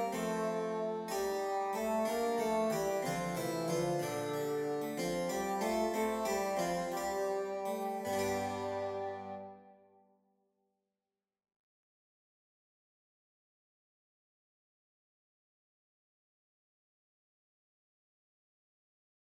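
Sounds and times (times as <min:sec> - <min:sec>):
harpsichord: 0:00.0 - 0:09.6
bassoon: 0:00.0 - 0:09.8.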